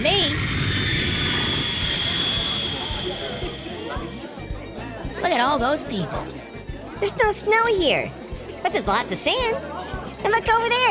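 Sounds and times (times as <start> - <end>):
fixed-wing aircraft engines roaring while landing at West Palm Beach: 0.0 - 3.6
speech: 5.4 - 10.9.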